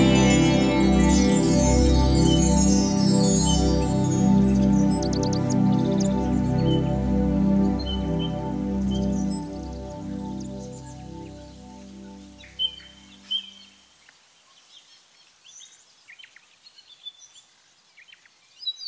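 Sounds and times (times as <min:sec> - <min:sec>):
ambient melody: 0:00.0 - 0:13.4.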